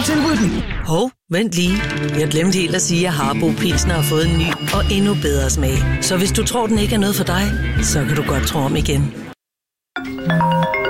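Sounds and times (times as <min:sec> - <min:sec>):
speech: 0:00.1 - 0:09.3
electronic two-tone telephone ring unanswered: 0:03.8 - 0:05.7, 0:10.0 - 0:10.8.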